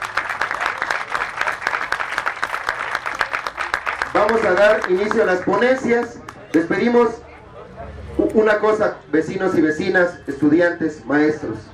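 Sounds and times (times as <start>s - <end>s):
audience applause: 0.0s - 6.6s
speech: 4.2s - 7.2s, 8.4s - 11.7s.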